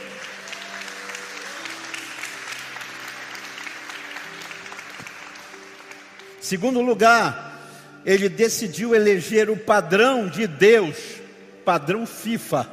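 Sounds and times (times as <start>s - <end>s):
audience applause: 0.0s - 6.4s
speech: 6.4s - 7.4s, 8.0s - 12.7s.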